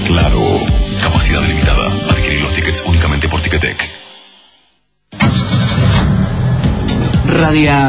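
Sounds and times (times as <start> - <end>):
speech: 0.1 - 4.0, 7.3 - 7.8
Fiat Punto car engine starting and idling: 5.1 - 7.2.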